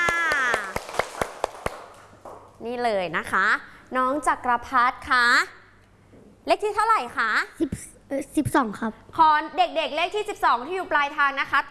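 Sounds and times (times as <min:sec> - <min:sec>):
children clapping for a classmate: 0:00.0 - 0:02.4
speech: 0:02.6 - 0:05.6, 0:06.4 - 0:11.6.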